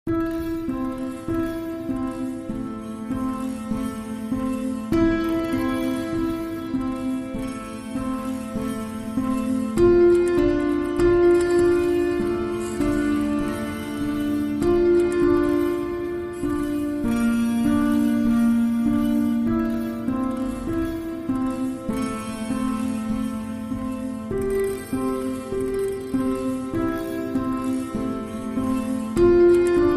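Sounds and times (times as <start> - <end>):
solo piano: 0.1 - 29.9.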